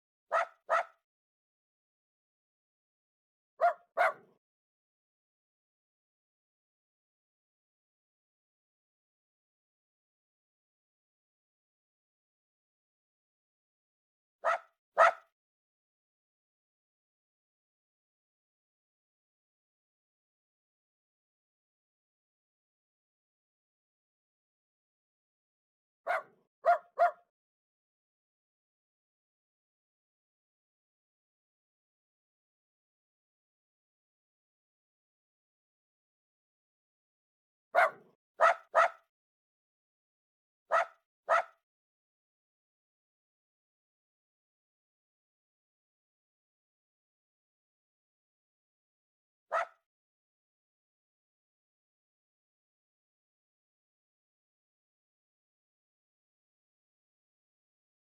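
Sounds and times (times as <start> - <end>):
dog barks: 0.3 - 1.0, 3.6 - 4.4, 14.4 - 15.3, 26.1 - 27.3, 37.8 - 39.1, 40.7 - 41.6, 49.5 - 49.8.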